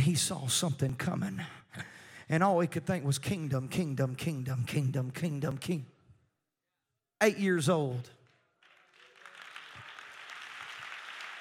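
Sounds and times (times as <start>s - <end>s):
speech: 0.0s - 5.9s, 7.2s - 8.2s
audience clapping: 8.3s - 11.3s.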